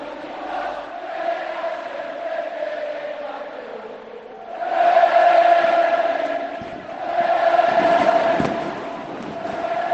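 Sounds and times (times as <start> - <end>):
huge stadium crowd singing a club anthem a cappella: 0.0 - 9.9
sharp bangs: 6.6 - 9.9.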